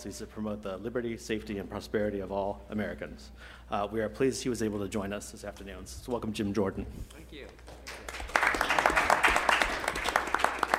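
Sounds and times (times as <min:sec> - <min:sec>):
speech: 0:00.0 - 0:08.1
audience applauding: 0:07.5 - 0:10.7.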